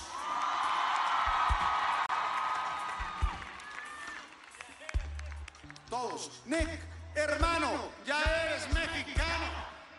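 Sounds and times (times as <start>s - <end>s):
audience cheering: 0.0s - 5.4s
audience applause: 0.1s - 6.2s
speech: 5.9s - 9.1s.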